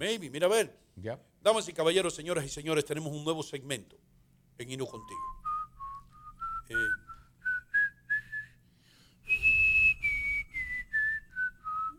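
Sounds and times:
speech: 0.0 - 5.5, 6.7 - 7.0
person whistling birdlike tune: 5.0 - 8.6, 9.2 - 11.9.

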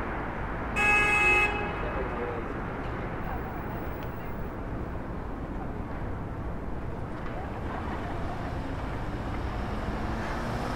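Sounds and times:
street traffic rumble in Brooklyn: 0.0 - 10.7
car horn honk: 0.8 - 1.8.

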